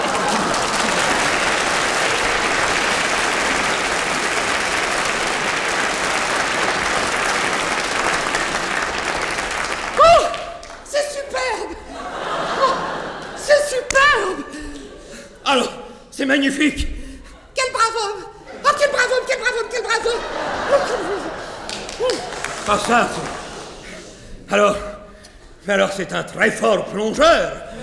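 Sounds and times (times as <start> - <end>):
laughter: 0.0 - 10.4, 11.0 - 15.8, 17.3 - 24.5
crowd applause: 0.0 - 11.0, 11.9 - 14.0, 19.9 - 24.4
speech: 16.3 - 16.9, 22.7 - 23.3, 25.7 - 27.8.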